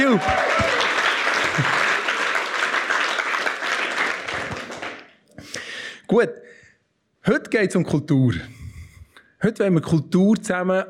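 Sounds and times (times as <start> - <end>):
speech: 0.0 - 0.6, 6.1 - 6.6, 7.2 - 8.6, 9.4 - 10.8
audience applause: 0.0 - 5.1.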